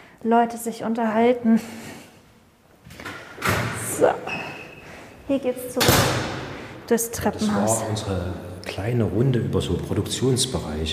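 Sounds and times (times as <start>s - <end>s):
speech: 0.2s - 2.0s, 4.0s - 4.4s, 5.3s - 6.3s, 6.9s - 10.9s
door being pulled shut: 2.9s - 4.6s.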